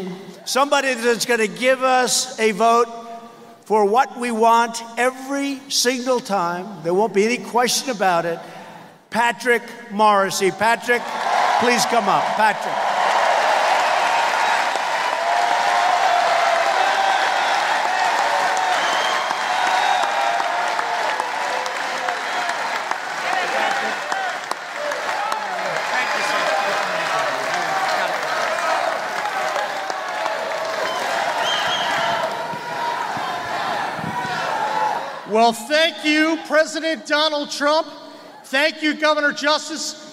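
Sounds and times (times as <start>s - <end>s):
speech: 0.0s - 3.0s, 3.7s - 12.9s, 36.5s - 40.0s
rally crowd applauding and cheering: 11.0s - 35.3s.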